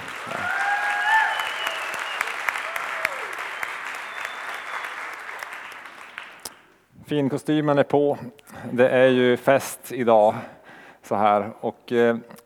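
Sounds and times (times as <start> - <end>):
audience applauding a choir: 0.0 - 6.7
speech: 7.1 - 12.4.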